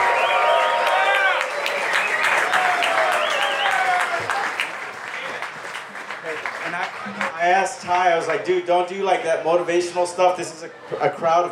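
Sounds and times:
high whistles: 0.0 - 0.8, 1.8 - 4.1
shouts and cheers: 0.0 - 5.3
crowd clapping: 0.0 - 8.9
speech: 7.6 - 11.5.

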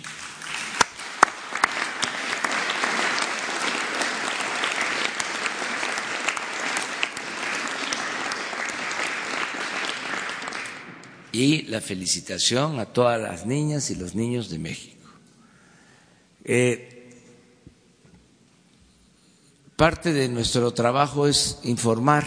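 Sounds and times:
audience applause: 0.0 - 11.2
speech: 11.4 - 15.0, 16.5 - 16.9, 19.8 - 22.2.

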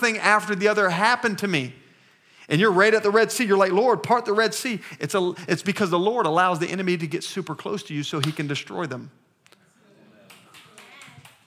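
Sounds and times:
speech: 0.0 - 1.8, 2.5 - 9.2
weak audience hand clapping: 10.2 - 11.4.

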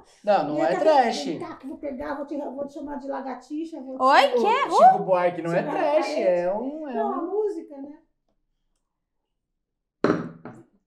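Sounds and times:
speech: 0.0 - 8.0
heavy thumps on a table: 10.0 - 10.6.

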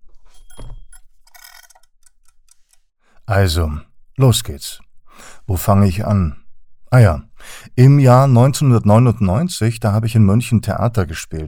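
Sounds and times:
mechanical egg timer ticking: 0.5 - 2.9
speech: 3.3 - 4.8, 5.5 - 11.4.

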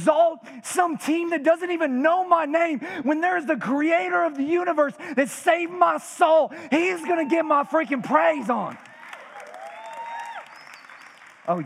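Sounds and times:
speech: 0.0 - 8.9
light polite clapping from a small group: 8.4 - 11.6.

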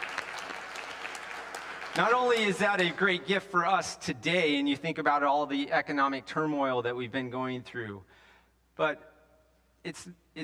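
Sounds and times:
audience applause: 0.0 - 3.2
speech: 2.0 - 8.2, 8.8 - 9.1, 9.8 - 10.4.

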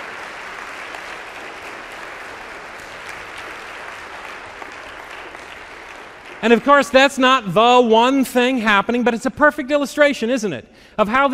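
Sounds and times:
large audience applause: 0.0 - 7.2
speech: 6.4 - 11.3.

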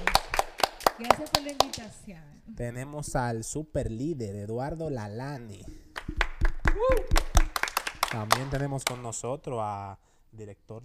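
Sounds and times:
audience clapping for a guest: 0.0 - 1.9, 5.9 - 9.2
speech: 1.0 - 5.8, 6.8 - 7.2, 8.1 - 10.8.

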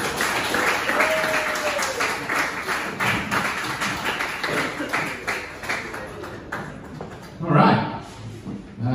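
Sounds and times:
comedy club audience clapping for a comedian: 0.0 - 7.4
person whooping: 0.9 - 2.1.

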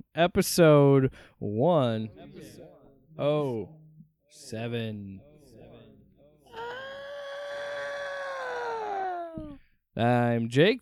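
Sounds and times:
speech: 0.2 - 5.3, 9.4 - 10.8
murmured vocal sounds: 2.1 - 9.6
man screeching like a cat: 6.5 - 9.6.

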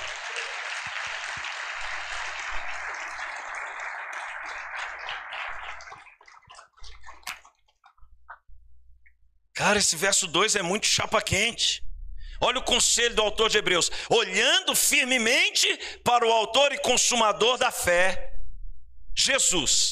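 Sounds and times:
crowd applauding: 0.0 - 7.4
speech: 9.6 - 11.8, 12.4 - 18.3, 19.2 - 19.9.

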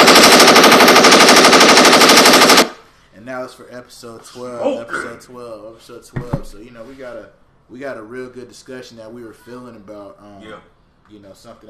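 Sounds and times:
gunfire sound effect: 0.0 - 2.8
speech: 3.6 - 11.6.

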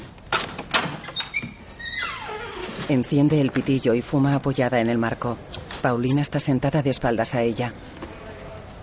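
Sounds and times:
door being opened: 0.3 - 3.8
speech: 2.9 - 8.0.

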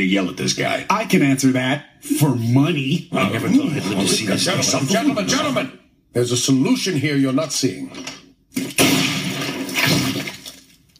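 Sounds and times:
speech: 0.0 - 8.9
laughter: 3.1 - 5.7
gooey brains splattering on a desktop: 8.5 - 10.9
gunshot: 8.6 - 10.4.

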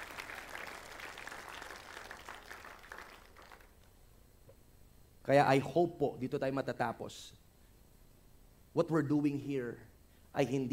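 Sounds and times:
church congregation clapping: 0.0 - 4.0
speech: 5.3 - 7.4, 8.8 - 10.7.

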